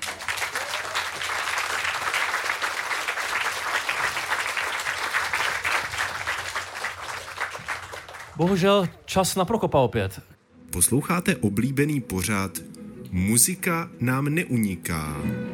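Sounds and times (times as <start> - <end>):
audience applause: 0.0 - 8.6
speech: 8.4 - 15.5.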